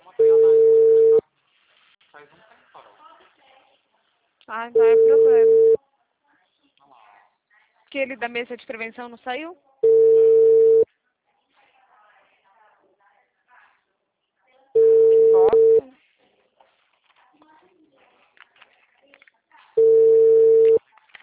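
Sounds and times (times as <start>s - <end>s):
telephone busy signal tones: 0.2s - 1.2s, 4.8s - 5.8s, 9.8s - 10.9s, 14.8s - 15.8s, 19.8s - 20.8s
speech: 4.5s - 5.8s, 7.9s - 9.7s.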